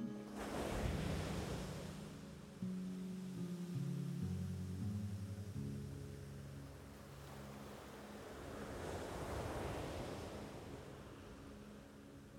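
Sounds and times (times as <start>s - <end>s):
waves washing in and breaking: 0.2s - 12.1s.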